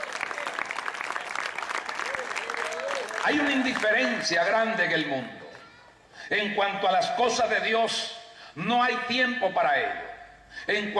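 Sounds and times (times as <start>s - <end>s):
audience applause: 0.0s - 4.6s
speech: 3.2s - 5.4s, 6.3s - 10.0s, 10.6s - 10.9s.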